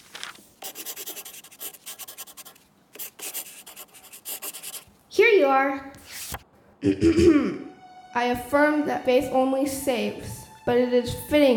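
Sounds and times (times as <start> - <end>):
pen scratching on paper as a confession is written: 0.6 - 4.9
speech: 5.5 - 5.9, 6.8 - 11.5.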